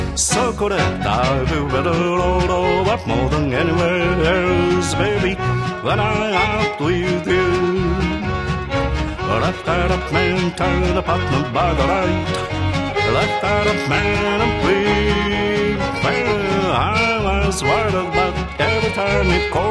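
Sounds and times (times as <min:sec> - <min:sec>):
person singing: 0:00.1 - 0:19.6.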